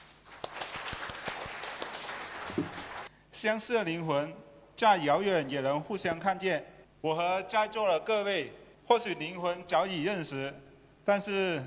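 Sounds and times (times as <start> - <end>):
audience applause: 0.0 - 3.1
speech: 2.6 - 2.8, 3.4 - 11.6.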